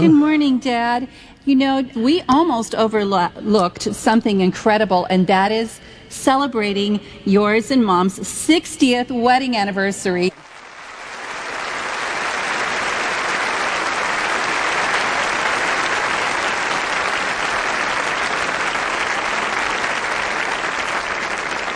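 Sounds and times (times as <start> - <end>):
speech: 0.0 - 10.4
audience applause celebrating a 60th wedding anniversary: 10.3 - 21.7.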